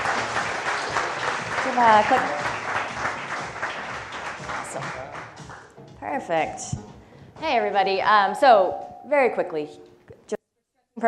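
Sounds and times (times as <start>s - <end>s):
crowd applauding: 0.0s - 5.7s
speech: 1.8s - 2.4s, 6.1s - 6.8s, 7.4s - 9.8s.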